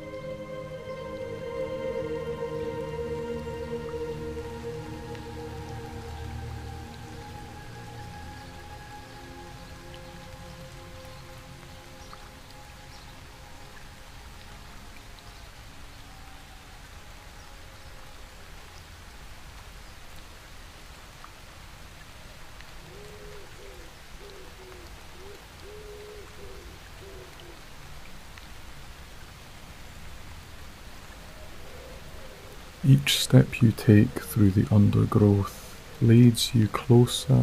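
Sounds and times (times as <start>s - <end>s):
low tonal hum: 0.0s - 15.2s
water falling from a woodland waterfall: 0.0s - 25.8s, 32.6s - 37.4s
faint owl-like hoots: 22.9s - 27.6s
speech: 32.8s - 37.4s.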